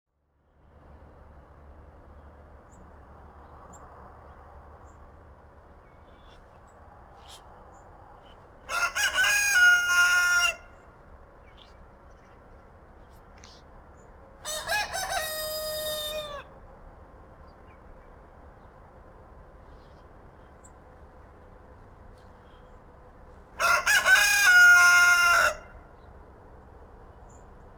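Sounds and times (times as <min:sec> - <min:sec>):
faint background hum: 0:00.1 - 0:27.7
rooster crowing: 0:08.7 - 0:10.8, 0:14.4 - 0:16.5, 0:23.6 - 0:25.9.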